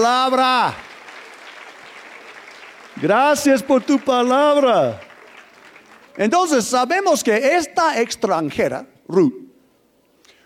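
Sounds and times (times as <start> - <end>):
speech: 0.0 - 0.9, 3.0 - 5.1, 6.2 - 9.4
audience applause: 0.0 - 7.0.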